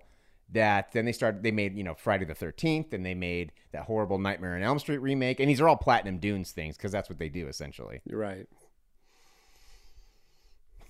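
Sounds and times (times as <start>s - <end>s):
speech: 0.5s - 8.6s
man taking a deep breath preparing himself: 9.0s - 10.8s.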